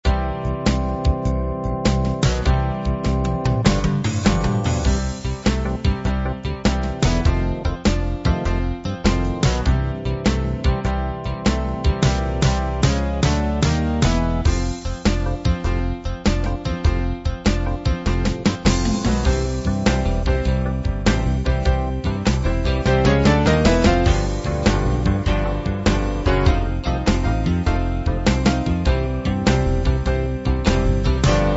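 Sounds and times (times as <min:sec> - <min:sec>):
blues music: 0:00.0 - 0:31.5.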